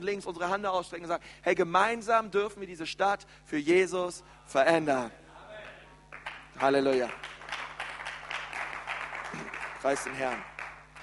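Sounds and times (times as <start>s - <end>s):
speech: 0.0s - 5.2s, 6.6s - 7.6s, 9.3s - 10.5s
scattered hand claps: 5.6s - 11.0s.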